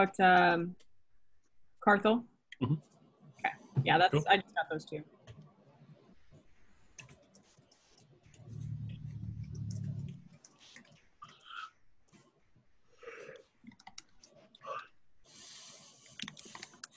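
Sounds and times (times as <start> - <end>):
speech: 0.0 - 0.9, 1.8 - 5.2
computer keyboard typing: 9.4 - 11.0, 13.6 - 14.4, 16.1 - 16.9.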